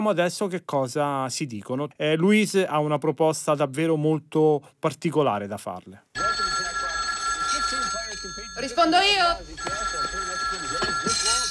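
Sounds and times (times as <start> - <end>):
speech: 0.0 - 6.1, 8.6 - 9.8
telephone ringing in a film excerpt: 6.2 - 11.4.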